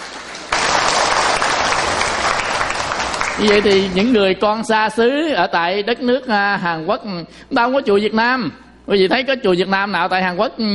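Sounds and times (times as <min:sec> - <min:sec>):
audience applause in temple hall: 0:00.0 - 0:04.2
speech: 0:03.4 - 0:10.7.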